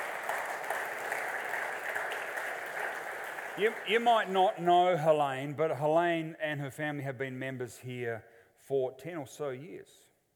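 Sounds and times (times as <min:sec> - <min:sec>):
audience applause: 0:00.0 - 0:05.2
speech: 0:03.6 - 0:10.1.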